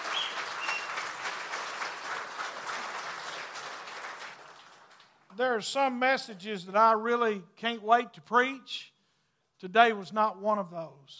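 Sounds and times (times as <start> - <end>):
people clapping: 0.0 - 5.4
speech: 5.4 - 8.9, 9.6 - 11.1.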